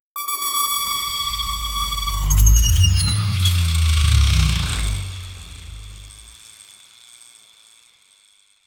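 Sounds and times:
fast futuristic sci-fi music: 0:00.7 - 0:06.4
cinematic impact: 0:01.0 - 0:06.4.

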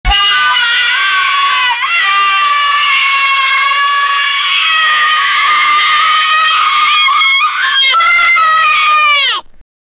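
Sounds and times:
children shouting: 0:00.1 - 0:09.4.

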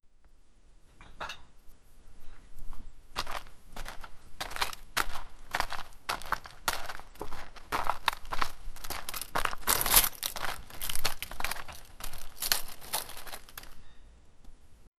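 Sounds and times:
footsteps: 0:02.2 - 0:13.8.

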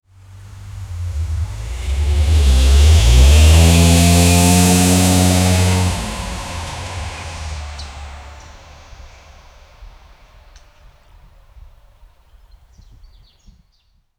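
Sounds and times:
Mercedes cars arriving: 0:00.2 - 0:10.8.

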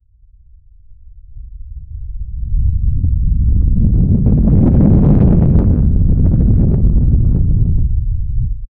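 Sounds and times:
deep rumbling thunderstorm rolling across the sky: 0:01.6 - 0:08.7.

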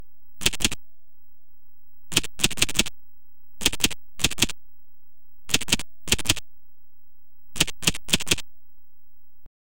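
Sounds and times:
four-digit code entered on keypad: 0:00.4 - 0:00.8, 0:02.1 - 0:02.9, 0:03.6 - 0:04.5, 0:05.5 - 0:06.4, 0:07.6 - 0:08.4.

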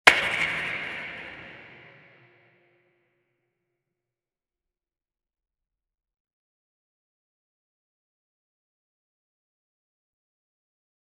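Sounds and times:
environmental hits: 0:00.1 - 0:02.3.

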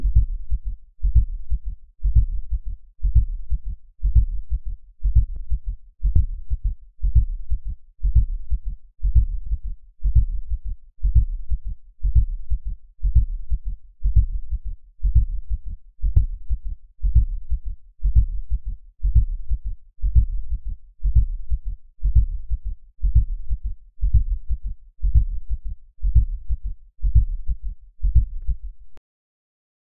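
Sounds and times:
organic alien heartbeat: 0:00.0 - 0:28.9.

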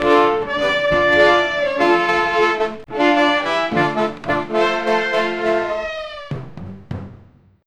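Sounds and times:
parade music: 0:00.0 - 0:07.1.

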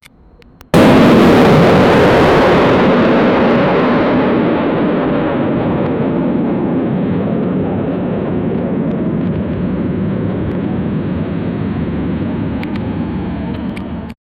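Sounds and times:
airplane: 0:00.0 - 0:14.2
explosion: 0:00.7 - 0:14.2.

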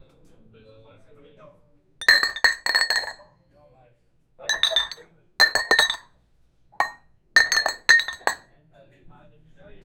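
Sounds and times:
glasses clinking: 0:02.0 - 0:03.2, 0:04.5 - 0:06.0, 0:06.8 - 0:08.4.

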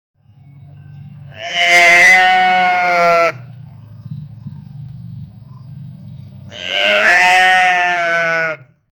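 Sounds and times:
sheep bleating: 0:01.2 - 0:03.5, 0:06.5 - 0:08.8.

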